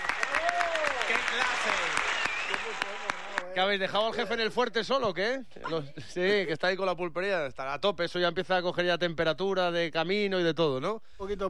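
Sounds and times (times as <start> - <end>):
applause: 0.0 - 3.6
speech: 1.3 - 11.4.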